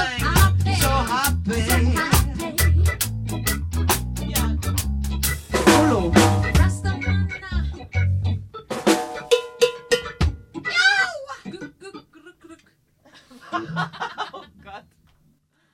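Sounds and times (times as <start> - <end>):
reggae ballad: 0.0 - 11.0
laughter: 11.3 - 15.0.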